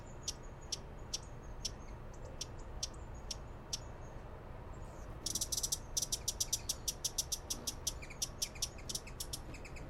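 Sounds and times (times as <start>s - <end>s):
broad-billed hummingbird high ticks: 0.0s - 4.0s, 5.2s - 9.8s.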